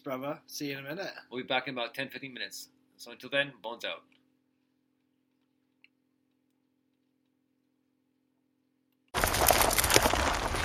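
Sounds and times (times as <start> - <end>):
speech: 0.0 - 4.2
gravel crunching under Ford Focus ST car wheels: 9.2 - 10.6.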